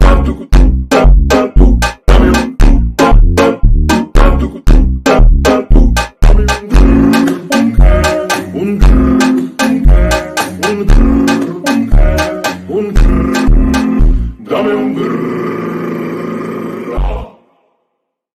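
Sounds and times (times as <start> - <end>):
slowed funk music with reverb: 0.0 - 14.4.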